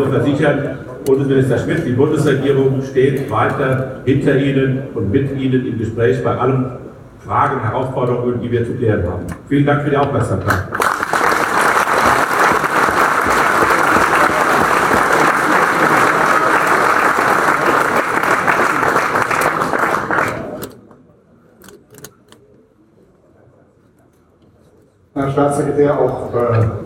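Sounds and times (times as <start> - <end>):
speech: 0.0 - 10.9, 25.6 - 26.8
audience applause: 10.7 - 20.6.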